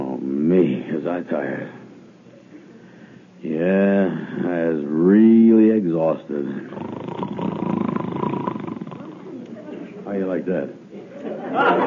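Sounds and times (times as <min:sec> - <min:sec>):
speech: 0:00.5 - 0:01.8, 0:03.4 - 0:07.5, 0:10.1 - 0:11.8
person snoring: 0:06.6 - 0:09.3
laughter: 0:11.0 - 0:11.8.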